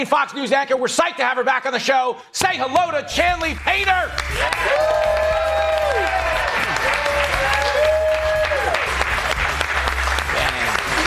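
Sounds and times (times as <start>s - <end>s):
speech: 0.0s - 5.3s
studio audience applauding: 3.2s - 11.0s
cheers and whoops: 4.3s - 9.0s.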